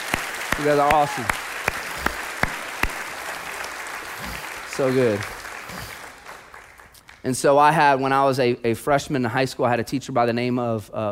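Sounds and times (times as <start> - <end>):
audience applause for children's ministry workers: 0.0 - 7.2
speech: 0.6 - 1.4, 4.8 - 6.0, 7.2 - 11.0.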